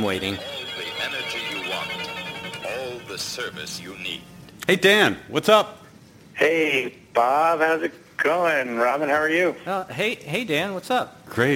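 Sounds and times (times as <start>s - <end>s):
speech: 0.0s - 2.0s, 3.0s - 5.8s, 6.4s - 11.5s
phone ringtone: 0.0s - 4.2s.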